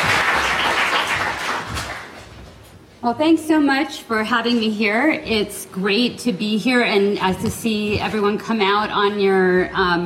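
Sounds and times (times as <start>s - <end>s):
audience applauding a speaker at an evening economics and technology talk: 0.0s - 2.3s
speech: 3.0s - 10.0s.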